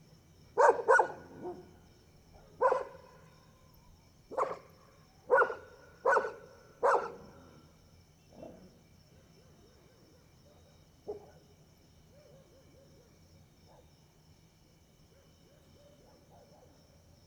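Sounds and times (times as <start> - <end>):
dogs barking at night: 0.6 - 1.7, 2.4 - 3.2, 4.3 - 4.7, 5.3 - 7.4, 11.1 - 11.4, 15.2 - 16.8.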